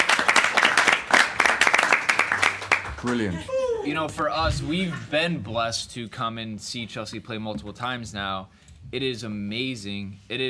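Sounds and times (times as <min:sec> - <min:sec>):
small group applause: 0:00.0 - 0:03.8
speech: 0:03.0 - 0:10.4.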